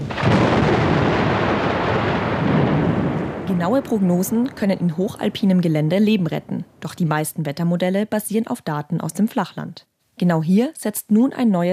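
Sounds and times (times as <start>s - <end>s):
thunder rumbling: 0.0s - 7.2s
speech: 3.6s - 11.7s.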